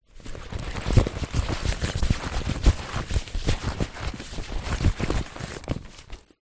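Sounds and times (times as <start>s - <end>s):
rummaging inside an empty camera bag: 0.1s - 6.4s.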